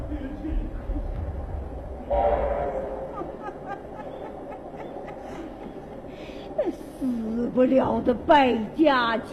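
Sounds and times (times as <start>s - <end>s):
train rolling by with a clattering roar: 0.0s - 9.3s
loud brassy train horn blast: 2.1s - 3.1s
laughter: 2.8s - 7.4s
speech: 7.6s - 9.3s.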